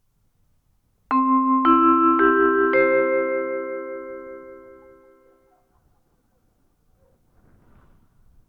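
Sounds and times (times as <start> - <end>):
airport and station ambience: 1.1 - 5.2.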